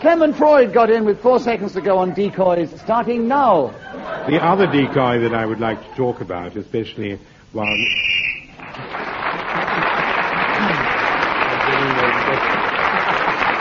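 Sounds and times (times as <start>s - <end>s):
laughter: 0.0s - 6.5s, 8.6s - 13.5s
speech: 0.0s - 8.2s
game show whistle blown: 7.6s - 8.6s.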